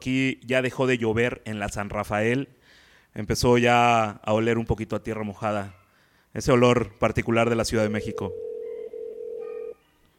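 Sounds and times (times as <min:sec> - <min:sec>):
speech: 0:00.0 - 0:08.5
telephone line tone on an outgoing call: 0:08.0 - 0:09.8.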